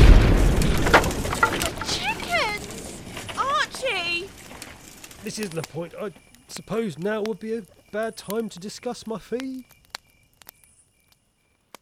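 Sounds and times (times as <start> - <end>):
steam generator explosion: 0.0 - 6.3
crackling bursts and hissing: 0.0 - 11.7
speech: 5.4 - 9.8.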